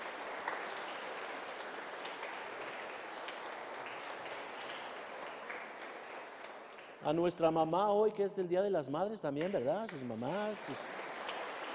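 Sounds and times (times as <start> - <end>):
audience applause: 0.0 - 7.4, 10.1 - 11.7
speech: 7.0 - 11.0.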